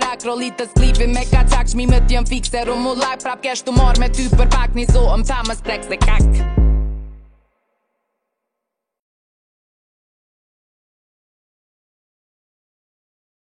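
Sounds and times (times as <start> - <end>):
freestyle beatboxing: 0.0 - 6.9.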